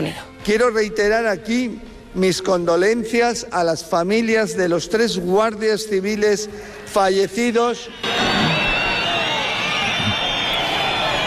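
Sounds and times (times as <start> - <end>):
speech: 0.0 - 8.4
crowd booing a minister: 7.9 - 11.2.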